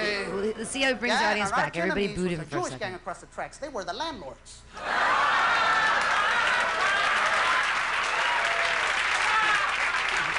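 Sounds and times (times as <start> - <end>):
speech: 0.6 - 5.1
audience applause: 4.9 - 10.3.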